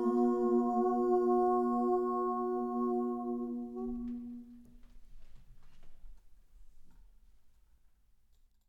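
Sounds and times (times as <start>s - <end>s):
Georgian healing song: 0.0s - 4.9s.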